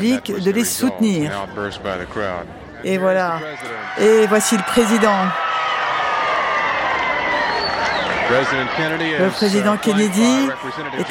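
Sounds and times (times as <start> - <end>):
speech: 0.0 - 5.5, 8.3 - 11.1
large crowd cheering and applauding: 3.4 - 11.1
whistles: 5.6 - 8.7.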